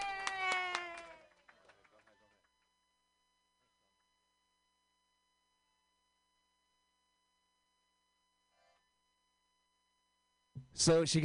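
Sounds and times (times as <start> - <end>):
audience clapping for a comedian: 0.0 - 2.7.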